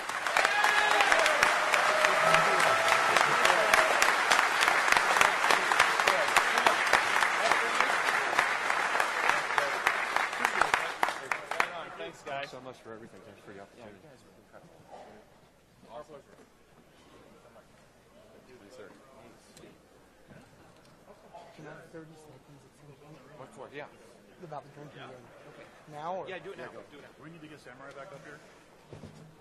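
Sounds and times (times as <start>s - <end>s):
scattered cheers: 0.0s - 8.4s
crowd applauding loudly: 0.0s - 12.3s.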